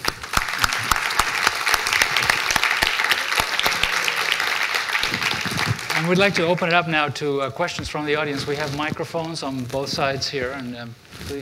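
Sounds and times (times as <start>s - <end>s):
audience applause after a talk: 0.0s - 8.8s
speech: 6.0s - 11.4s.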